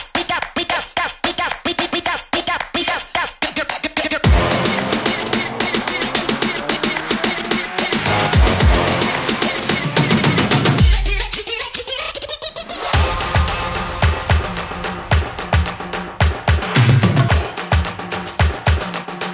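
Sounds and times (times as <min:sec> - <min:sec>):
music: 0:00.2 - 0:11.6, 0:12.7 - 0:19.3.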